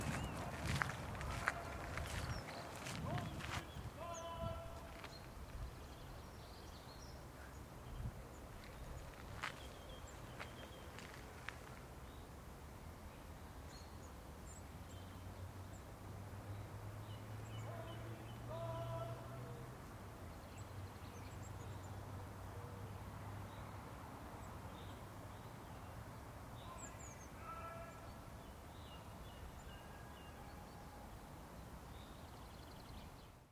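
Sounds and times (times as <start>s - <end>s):
garden ambience: 0.0s - 33.5s.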